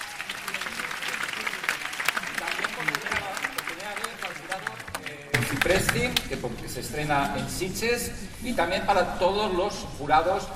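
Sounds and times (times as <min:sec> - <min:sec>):
audience applause: 0:00.0 - 0:06.2
speech: 0:05.6 - 0:10.5.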